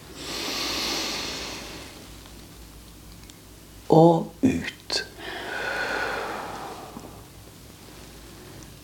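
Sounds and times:
deep breath in: 0:00.2 - 0:02.0, 0:05.2 - 0:07.2
speech: 0:03.9 - 0:04.4.

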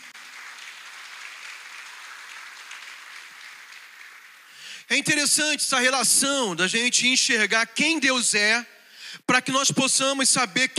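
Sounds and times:
loud audience applause: 0:00.0 - 0:05.0
speech: 0:04.9 - 0:10.7.

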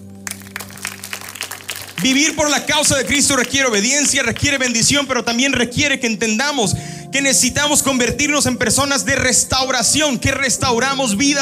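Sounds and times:
audience applause: 0:00.2 - 0:05.0
speech: 0:02.0 - 0:11.4.

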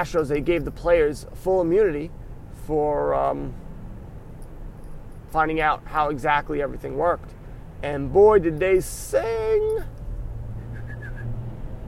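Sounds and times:
speech: 0:00.0 - 0:03.6, 0:05.3 - 0:10.0
person whistling: 0:10.6 - 0:11.3.

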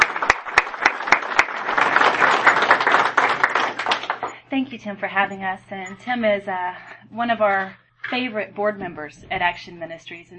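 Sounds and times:
church congregation applause welcoming guests: 0:00.0 - 0:04.4
speech: 0:04.5 - 0:10.3.

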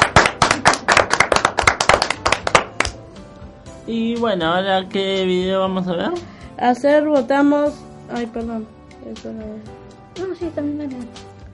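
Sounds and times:
applause, hand clapping: 0:00.0 - 0:03.1
speech: 0:03.9 - 0:11.2.

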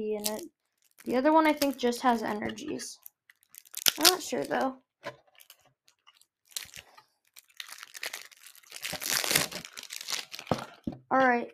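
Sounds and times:
speech: 0:00.0 - 0:03.1, 0:04.0 - 0:05.2, 0:11.1 - 0:11.5
trading card pack foil wrapper being torn open: 0:00.2 - 0:01.9, 0:03.0 - 0:04.5, 0:05.3 - 0:10.6.

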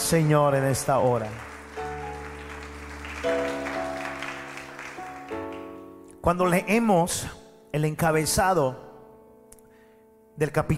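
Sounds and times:
audience applauding: 0:00.0 - 0:05.9
speech: 0:00.1 - 0:01.5, 0:06.2 - 0:08.8, 0:10.4 - 0:10.7.

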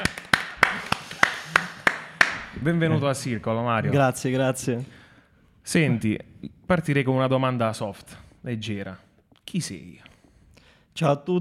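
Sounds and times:
applause: 0:00.0 - 0:02.6
speech: 0:02.6 - 0:05.0, 0:05.6 - 0:10.1, 0:11.0 - 0:11.3.

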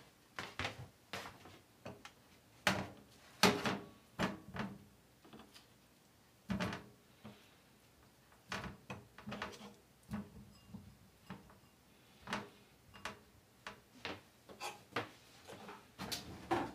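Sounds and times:
clacks and knocks from kitchen work and knife sharpening: 0:02.6 - 0:05.5, 0:06.5 - 0:06.9, 0:08.4 - 0:16.7.

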